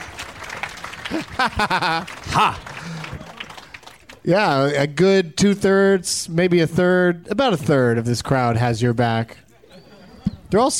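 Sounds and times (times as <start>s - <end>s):
audience clapping: 0.0s - 4.7s
laughter: 0.4s - 4.1s, 9.4s - 10.7s
speech: 1.1s - 3.0s, 4.2s - 9.4s, 10.5s - 10.7s.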